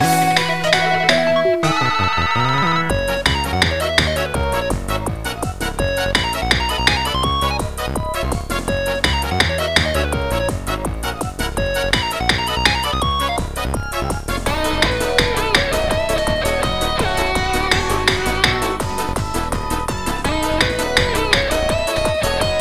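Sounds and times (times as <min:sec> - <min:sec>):
racing game music with drums: 0:00.0 - 0:22.5.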